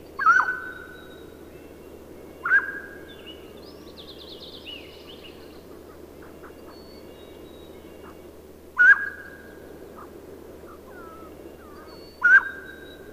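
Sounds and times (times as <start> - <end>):
mountain quail whistled call: 0.2 - 1.1, 2.4 - 3.0, 8.8 - 9.4, 10.9 - 13.0.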